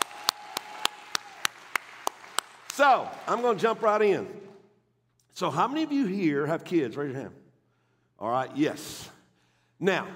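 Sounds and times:
audience clapping hands in unison: 0:00.0 - 0:04.6
speech: 0:02.8 - 0:04.4, 0:05.4 - 0:07.4, 0:08.2 - 0:09.1, 0:09.8 - 0:10.1.

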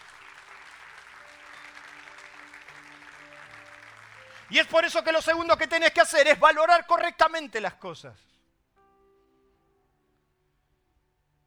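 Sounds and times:
audience applause: 0:00.0 - 0:06.8
speech: 0:04.5 - 0:08.3.

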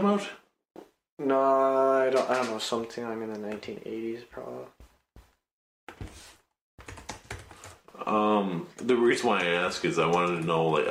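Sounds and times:
speech: 0:00.0 - 0:00.4, 0:01.2 - 0:04.8, 0:08.0 - 0:10.8
typing a search on a computer keyboard: 0:02.2 - 0:02.6, 0:06.8 - 0:07.8, 0:09.2 - 0:10.8.

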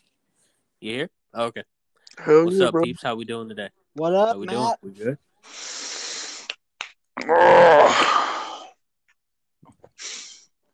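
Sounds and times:
speech: 0:00.8 - 0:05.8, 0:07.2 - 0:08.3
finger knuckles popping: 0:06.4 - 0:08.2
person yawning: 0:07.2 - 0:08.8.

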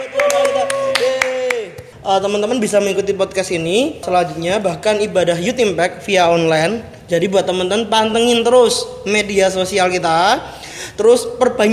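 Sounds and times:
scattered hand claps from a small audience: 0:00.0 - 0:01.9
speech: 0:02.1 - 0:11.7.

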